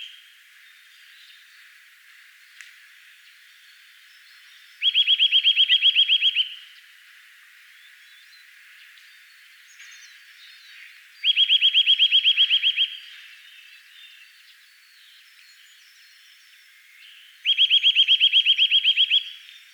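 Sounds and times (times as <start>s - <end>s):
Eurasian nuthatch trilling: 4.8s - 6.7s, 11.2s - 13.1s, 17.4s - 19.4s.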